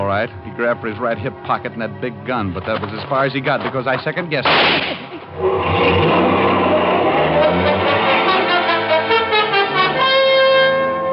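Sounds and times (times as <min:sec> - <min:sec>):
speech: 0:00.1 - 0:06.3
car engine revving and accelerating through gears: 0:05.3 - 0:11.0.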